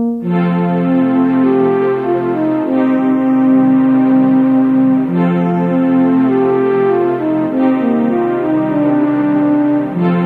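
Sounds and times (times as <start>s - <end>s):
fanfare: 0.2s - 10.2s.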